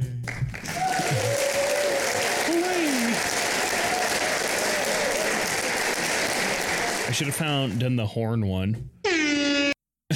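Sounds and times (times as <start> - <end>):
clapping sound effect: 0.0 - 7.8
speech: 7.2 - 8.9.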